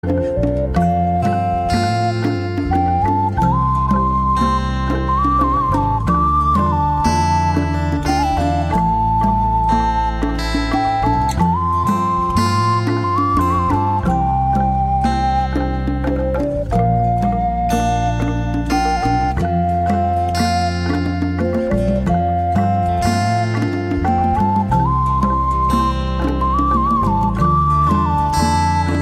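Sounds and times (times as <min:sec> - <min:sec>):
heroic flute: 0:00.0 - 0:29.0.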